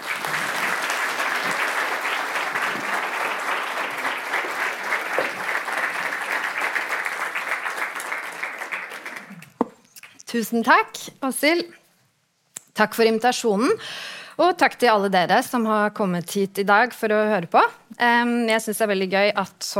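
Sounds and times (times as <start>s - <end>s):
audience applause: 0.0s - 9.7s
speech: 10.4s - 11.8s, 12.8s - 19.7s.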